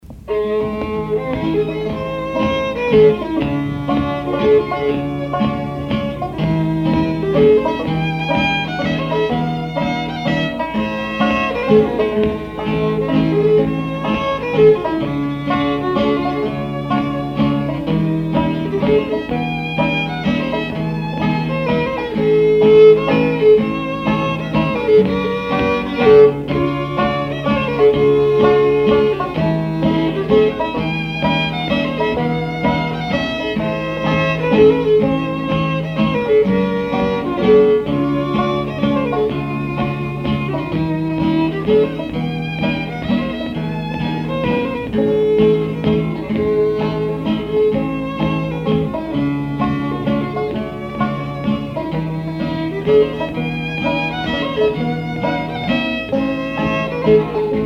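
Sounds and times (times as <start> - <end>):
waltz music: 0.0 - 57.6.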